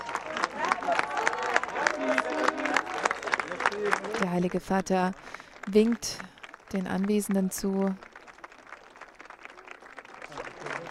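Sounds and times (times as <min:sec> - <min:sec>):
crowd applause greeting arrival: 0:00.0 - 0:10.8
speech: 0:03.9 - 0:08.1.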